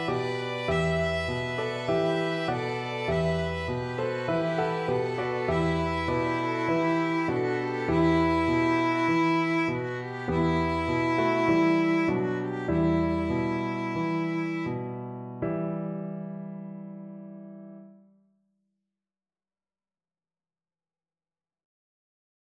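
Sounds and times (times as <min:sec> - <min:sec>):
violin trio: 0:00.0 - 0:14.9.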